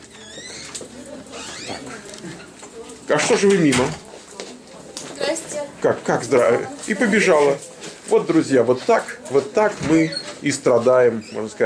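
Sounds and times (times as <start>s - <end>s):
door opening: 0.0s - 2.6s, 9.4s - 10.4s
speech: 3.1s - 4.0s, 5.8s - 11.6s.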